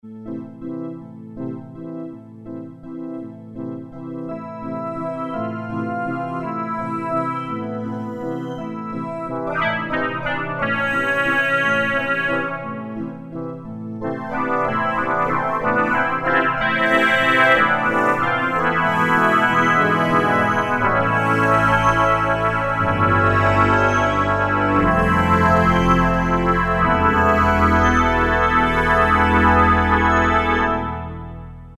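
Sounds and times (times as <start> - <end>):
Yamaha TG77 synthesizer: 0.0 - 31.7.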